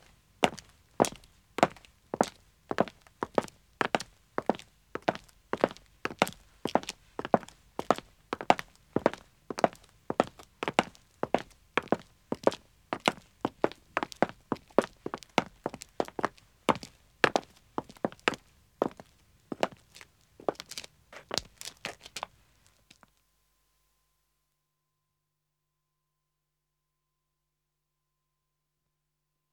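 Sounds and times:
two men's footsteps walking on pavement: 2.8 - 23.0.

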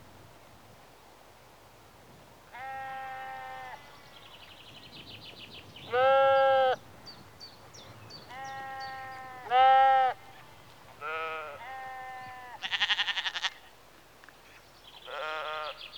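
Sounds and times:
sheep bleating outdoors in a rural setting in the early evening: 2.6 - 3.8, 8.3 - 10.2, 11.0 - 13.6, 15.1 - 15.8.

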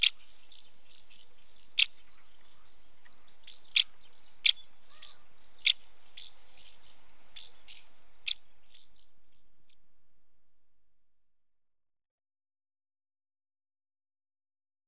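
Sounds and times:
female house martin calling at nest entrance: 0.0 - 9.9.

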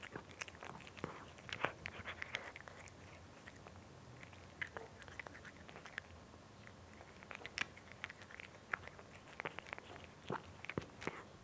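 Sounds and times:
cat eating with sharp crunchy bites: 0.0 - 11.3.

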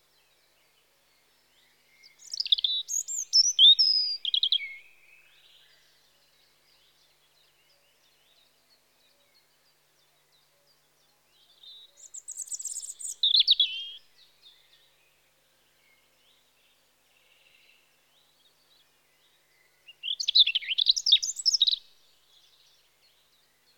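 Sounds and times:
European robin Erithacus rubecula singing in spring: 1.1 - 8.4, 11.3 - 15.0, 18.5 - 23.7.

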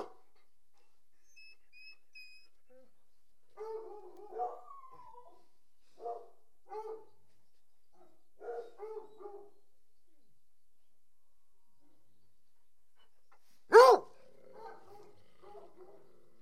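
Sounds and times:
dog barking: 0.0 - 0.2, 3.6 - 4.7, 6.0 - 7.2, 8.0 - 9.6, 13.7 - 16.1.

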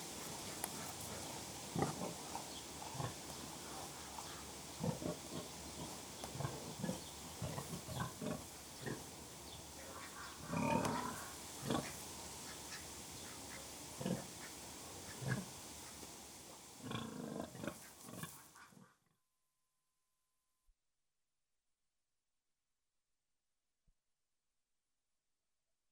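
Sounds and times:
several pigs grunting: 0.4 - 9.2, 9.8 - 12.0, 13.5 - 15.6, 16.8 - 18.9.

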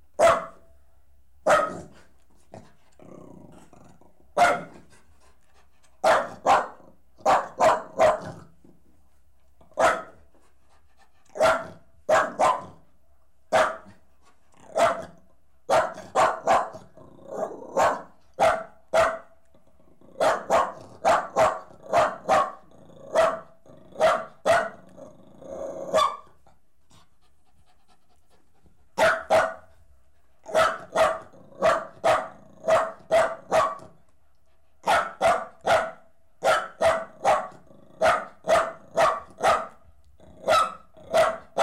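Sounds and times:
dog barking: 0.2 - 0.7, 1.4 - 2.0, 4.4 - 4.8, 6.0 - 8.4, 9.8 - 10.2, 11.3 - 12.8, 13.5 - 13.9, 14.7 - 19.3, 20.2 - 24.8, 25.9 - 26.3, 29.0 - 29.7, 30.5 - 34.0, 34.8 - 39.8, 40.4 - 41.6
dog growling whine: 3.0 - 4.2, 24.8 - 26.0.

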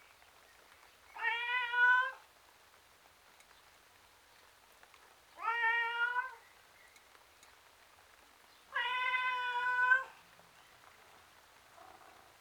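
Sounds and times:
male tom cat meowing miserably outdoors: 1.2 - 2.2, 5.4 - 6.4, 8.8 - 10.1.

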